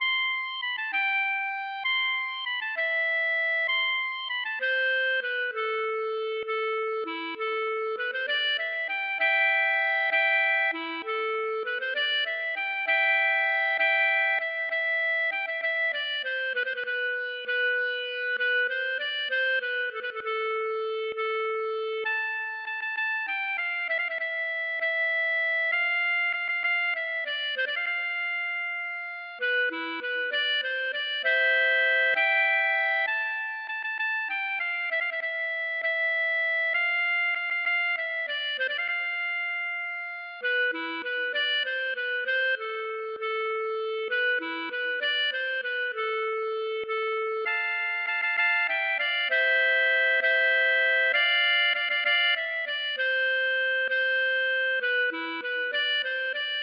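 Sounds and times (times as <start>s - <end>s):
waltz music: 0.0s - 56.6s.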